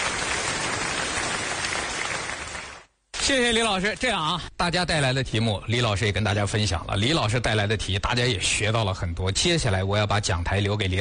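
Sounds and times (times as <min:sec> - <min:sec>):
audience applause for a teacher at a talk about Henan opera: 0:00.0 - 0:02.9
speech: 0:03.3 - 0:10.9.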